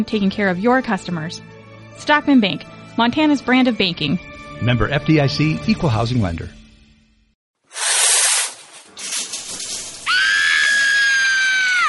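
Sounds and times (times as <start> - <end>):
speech: 0.0 - 6.6
person shrieking under a cold shower: 10.1 - 11.8.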